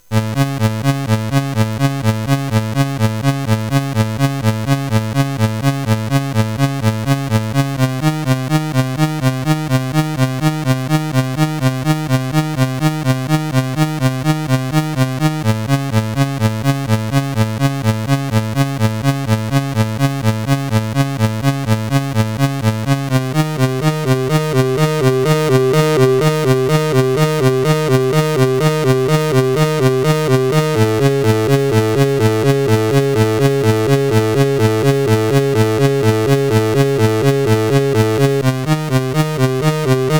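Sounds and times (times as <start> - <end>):
chiptune rhythm on CSG 8580 R5 sound chip: 0.0 - 40.1.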